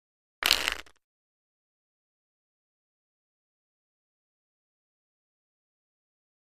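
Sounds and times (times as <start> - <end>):
deck of cards shuffling: 0.4 - 1.0.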